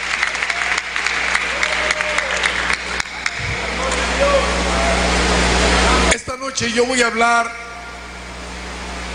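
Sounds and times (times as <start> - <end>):
audience applauding: 0.0 - 5.9
speech: 6.6 - 7.6.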